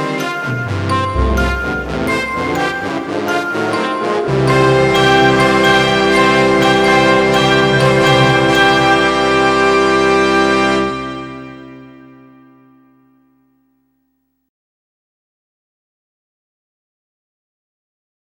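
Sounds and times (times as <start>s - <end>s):
brass instruments: 0.0s - 12.5s.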